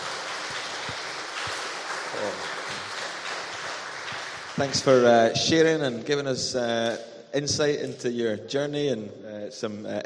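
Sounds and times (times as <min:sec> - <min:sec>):
audience applause: 0:00.0 - 0:05.3
speech: 0:04.6 - 0:10.0.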